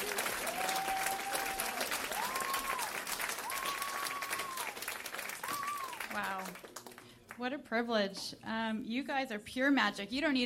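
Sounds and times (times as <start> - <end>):
audience applause: 0.0 - 7.2
speech: 6.2 - 6.7, 7.4 - 10.4.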